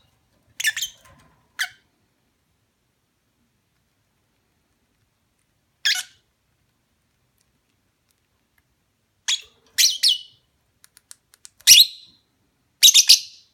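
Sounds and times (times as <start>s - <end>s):
lovebird chirping mating call: 0.6s - 1.0s, 9.3s - 10.4s, 12.8s - 13.5s.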